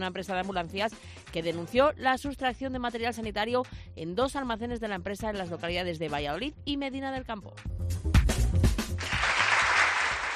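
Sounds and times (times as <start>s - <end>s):
speech: 0.0s - 8.2s
applause sound effect on a Valladolid radio news segment: 8.8s - 10.3s.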